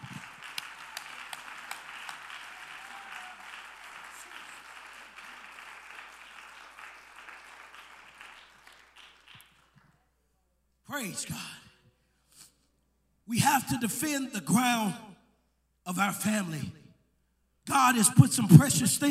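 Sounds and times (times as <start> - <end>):
audience clapping hands: 0.0 - 10.0
speech: 11.0 - 11.6, 13.3 - 15.1, 15.9 - 16.8, 17.6 - 19.0.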